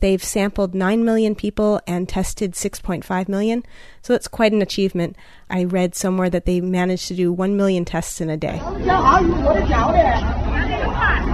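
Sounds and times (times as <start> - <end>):
speech: 0.0 - 10.4
crowd chatter at an outdoor Wuhan COVID nucleic acid testing site: 8.6 - 11.3.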